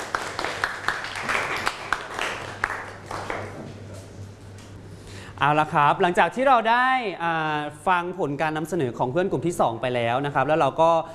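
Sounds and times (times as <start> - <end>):
classroom applause: 0.0 - 3.6
speech: 5.4 - 11.1.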